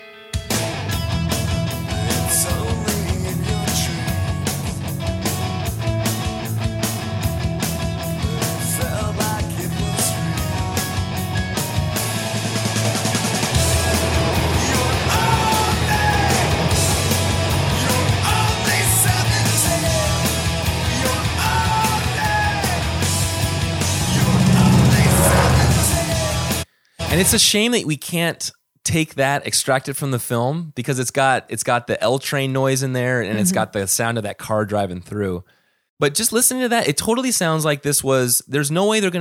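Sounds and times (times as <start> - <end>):
guitar: 0.0 - 27.4, 33.2 - 33.8
drums: 0.3 - 27.4
speech: 27.2 - 39.1.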